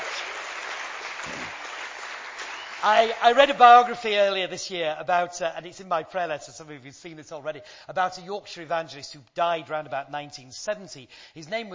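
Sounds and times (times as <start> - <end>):
audience applause: 0.0 - 3.5
speech: 2.8 - 11.7.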